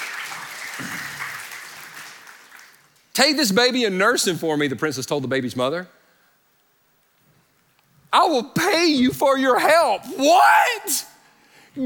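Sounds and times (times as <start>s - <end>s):
congregation clapping during a church sermon: 0.0s - 3.1s
speech: 3.2s - 6.0s, 8.3s - 11.1s.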